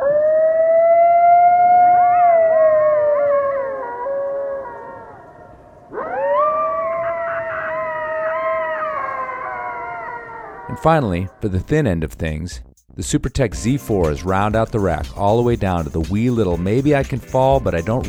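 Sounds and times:
coyote howling: 0.0 - 11.4
speech: 10.8 - 18.0.

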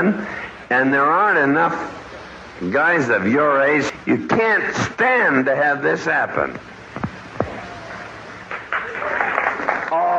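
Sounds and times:
speech: 0.0 - 2.0, 2.6 - 6.8
audience clapping: 7.4 - 10.1.

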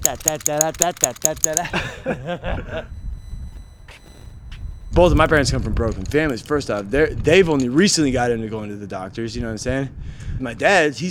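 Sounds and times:
wind-up monkey toy clapping cymbals: 0.0 - 1.8
speech: 0.0 - 3.0, 5.0 - 11.0
laughter: 1.1 - 3.0.

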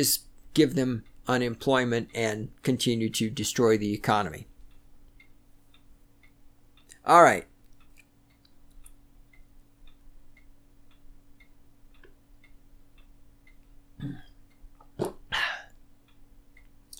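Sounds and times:
speech: 0.0 - 4.5, 7.1 - 7.5
person gulping a big swig of water: 14.0 - 14.4, 15.0 - 15.7.

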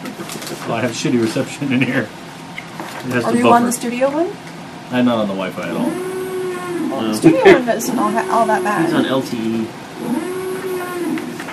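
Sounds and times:
speech: 0.7 - 2.2, 3.0 - 6.1, 7.0 - 10.2
alarm noise: 5.7 - 11.1.

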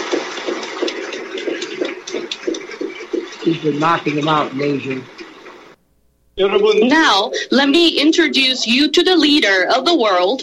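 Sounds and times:
crowd applauding: 0.0 - 5.8
speech: 3.4 - 5.2, 6.4 - 10.4.

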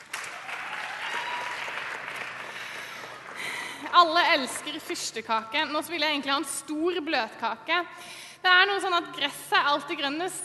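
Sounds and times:
audience applause: 0.0 - 4.0
speech: 4.0 - 10.4.

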